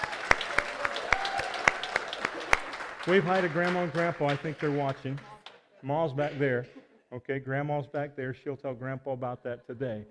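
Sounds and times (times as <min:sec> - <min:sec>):
group clapping in rhythm: 0:00.0 - 0:06.5
speech: 0:03.1 - 0:10.0.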